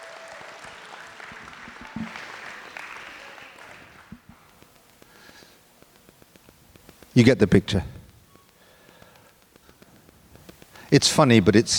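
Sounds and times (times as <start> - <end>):
audience applause: 0.0 - 4.4
speech: 7.2 - 8.0, 10.9 - 11.7.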